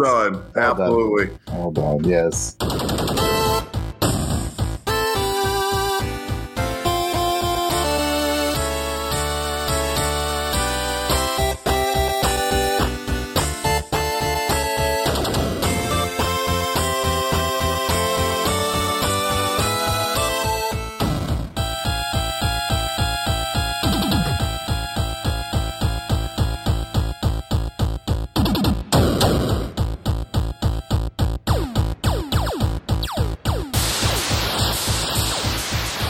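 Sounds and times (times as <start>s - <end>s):
speech: 0.0s - 3.4s
eight-bit music: 0.0s - 36.0s.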